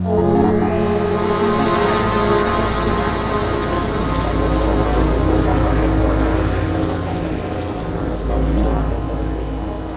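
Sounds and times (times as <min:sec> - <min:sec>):
synth pad: 0:00.0 - 0:09.9.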